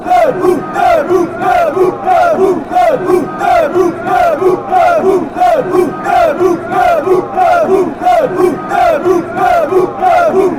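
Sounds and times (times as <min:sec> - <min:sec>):
chanting: 0:00.0 - 0:10.5.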